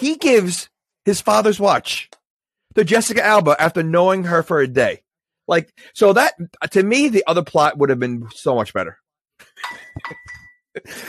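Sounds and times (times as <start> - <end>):
speech: 0.0 - 2.2, 2.8 - 9.0, 9.6 - 11.0
glass clinking without breaking: 9.4 - 10.8.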